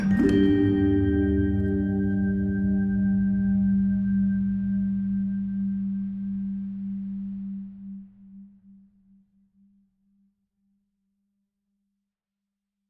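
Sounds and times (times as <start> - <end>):
dulcitone: 0.0 - 8.2.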